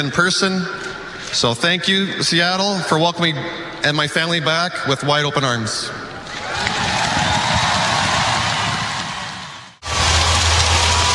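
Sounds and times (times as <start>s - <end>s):
speech: 0.0s - 6.0s
arena crowd cheering and applauding: 6.2s - 11.1s.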